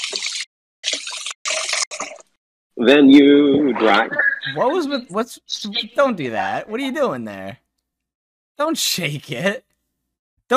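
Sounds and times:
tap water running while hands are washed: 0.0 - 2.4
speech: 2.8 - 7.6, 8.6 - 9.7.

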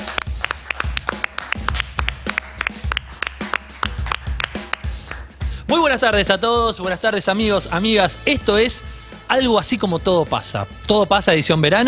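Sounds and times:
audience applause: 0.0 - 6.2
speech: 5.8 - 11.8.

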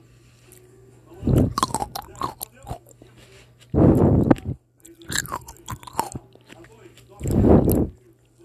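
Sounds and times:
person biting and chewing a sweet grape: 1.2 - 8.0.

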